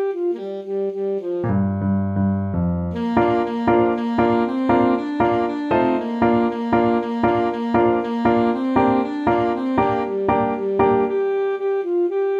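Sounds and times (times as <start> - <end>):
medium pentatonic melody: 0.2 - 12.3.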